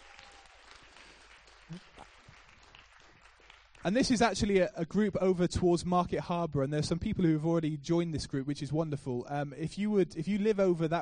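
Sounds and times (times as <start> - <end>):
audience applause: 0.0 - 4.0
speech: 1.7 - 2.0, 3.8 - 11.0.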